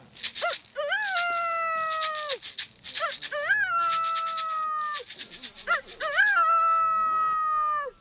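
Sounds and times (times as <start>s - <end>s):
rooster crowing: 0.4s - 2.4s, 3.0s - 5.0s, 5.7s - 8.0s.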